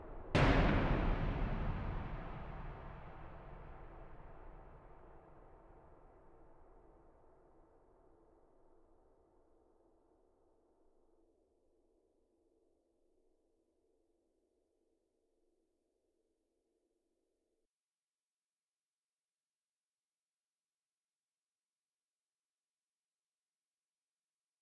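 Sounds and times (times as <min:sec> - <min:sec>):
thunder clap: 0:00.4 - 0:05.0.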